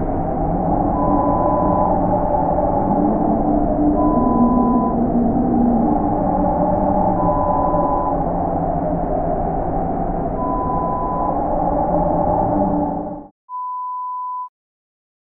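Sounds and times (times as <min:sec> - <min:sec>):
lo-fi howling wind horror sound effect: 0:00.0 - 0:13.3.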